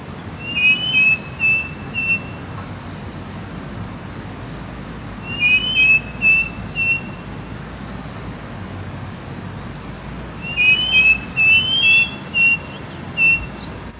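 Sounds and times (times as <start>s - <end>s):
striped cuckoo whistled calls: 0.4s - 2.5s, 5.2s - 7.3s, 10.4s - 13.9s.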